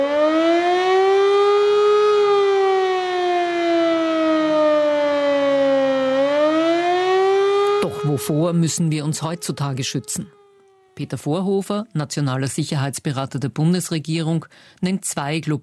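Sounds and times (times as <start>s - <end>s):
civil defense siren wailing: 0.0s - 11.4s
speech: 8.2s - 10.4s, 11.0s - 15.6s.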